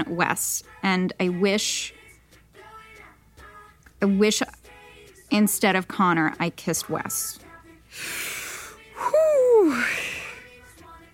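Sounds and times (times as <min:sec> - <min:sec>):
speech: 0:00.0 - 0:02.0, 0:04.0 - 0:04.6, 0:05.3 - 0:08.2
person taking a deep breath: 0:07.9 - 0:08.8, 0:09.6 - 0:10.5
person sighing: 0:08.0 - 0:10.4.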